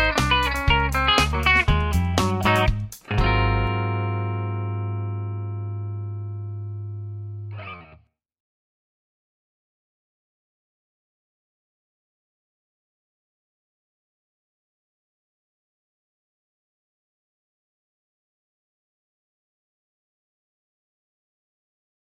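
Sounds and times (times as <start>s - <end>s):
clean Tele electric guitar on bridge pickup: 0.0s - 8.1s.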